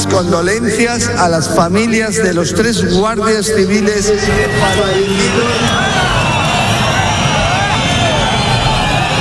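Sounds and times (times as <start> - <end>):
speech: 0.2 - 6.2
crowd booing and jeering: 3.6 - 9.1.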